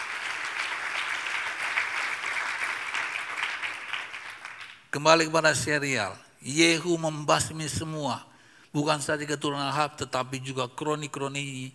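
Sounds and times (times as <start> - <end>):
crowd applause: 0.0 - 4.8
speech: 4.9 - 11.7.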